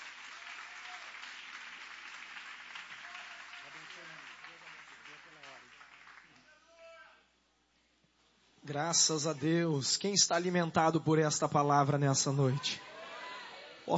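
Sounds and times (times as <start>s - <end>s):
audience applauding loudly: 0.0s - 6.9s
speech: 8.7s - 12.9s.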